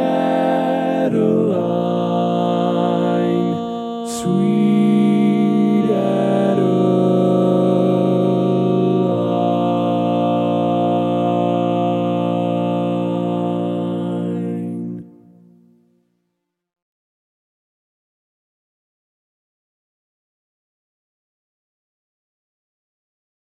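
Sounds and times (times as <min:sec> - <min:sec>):
baritone: 0:00.0 - 0:15.7.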